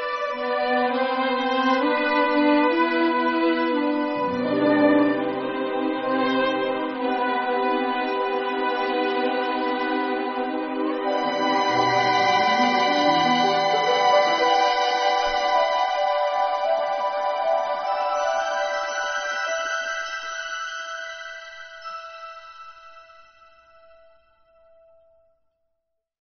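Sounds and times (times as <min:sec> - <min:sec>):
ensemble of student and graduate violinists playing: 0:00.1 - 0:19.5.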